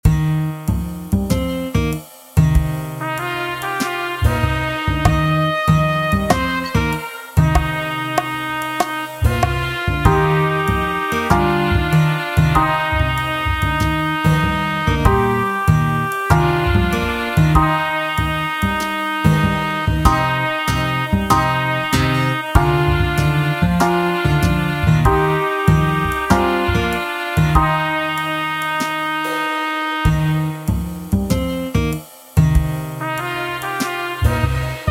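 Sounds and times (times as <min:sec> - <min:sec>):
practice tune in E flat: 0:00.0 - 0:34.9.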